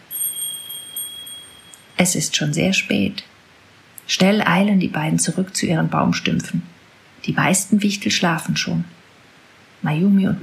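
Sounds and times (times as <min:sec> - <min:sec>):
small bell ringing: 0:00.0 - 0:02.2
speech: 0:02.0 - 0:03.3, 0:04.1 - 0:09.0, 0:09.8 - 0:10.4.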